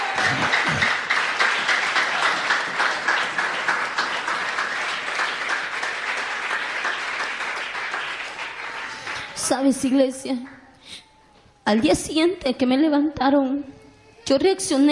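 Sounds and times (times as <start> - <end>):
audience applause: 0.0 - 9.6
speech: 9.6 - 10.6, 11.7 - 14.9.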